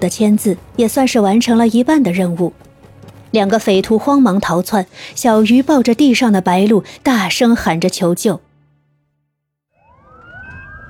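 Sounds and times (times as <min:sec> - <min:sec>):
speech: 0:00.0 - 0:02.7, 0:03.3 - 0:08.5
ambulance siren: 0:09.7 - 0:10.8.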